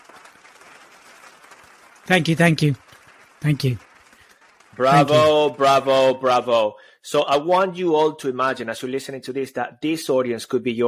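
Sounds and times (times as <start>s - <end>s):
hand clapping: 0.0s - 5.6s
speech: 2.1s - 2.8s, 3.4s - 3.9s, 4.8s - 10.8s.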